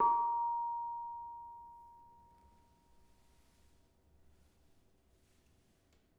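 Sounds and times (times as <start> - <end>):
bonang barung gamelan gong chime: 0.0 - 2.2.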